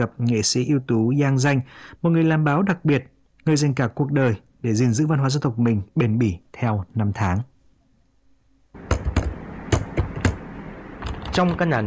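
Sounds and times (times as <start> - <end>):
speech: 0.0 - 7.5, 11.4 - 11.8
typing on a computer keyboard in a small house at the foot of a mountain in Tà Điệp village, Gia Lai, Vietnam: 8.9 - 10.4, 11.0 - 11.7.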